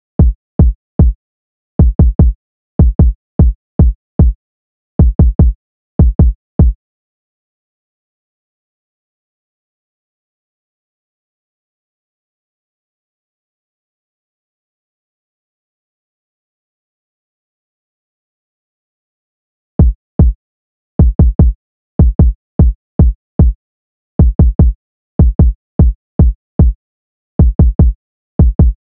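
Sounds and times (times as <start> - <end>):
kick drum: 0.0 - 1.2, 1.8 - 4.4, 5.0 - 6.8, 19.8 - 20.4, 21.0 - 23.6, 24.2 - 26.8, 27.4 - 28.8.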